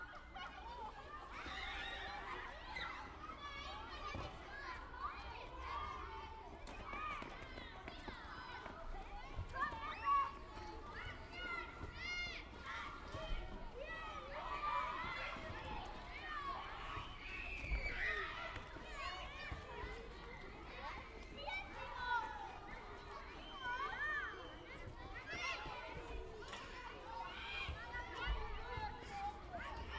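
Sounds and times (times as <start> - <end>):
schoolyard noise: 0.0 - 29.9.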